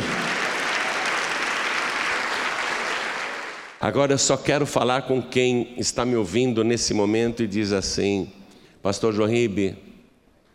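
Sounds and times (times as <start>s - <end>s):
audience applauding: 0.0s - 3.8s
speech: 3.8s - 9.9s.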